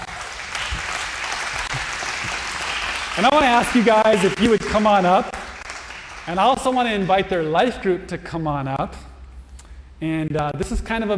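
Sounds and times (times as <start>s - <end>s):
crowd applauding: 0.0s - 7.6s
speech: 3.2s - 5.4s, 6.3s - 9.1s, 10.0s - 11.1s.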